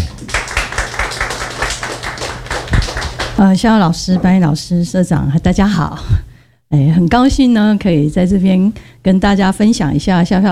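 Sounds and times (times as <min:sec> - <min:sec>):
audience applause: 0:00.0 - 0:03.4
speech: 0:03.4 - 0:10.4.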